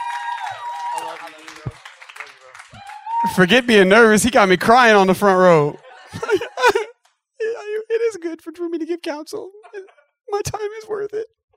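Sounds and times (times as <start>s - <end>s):
audience applause: 0.0s - 3.9s
speech: 3.2s - 6.8s, 9.0s - 9.7s, 10.3s - 11.4s
laughter: 5.7s - 7.0s, 9.5s - 10.1s.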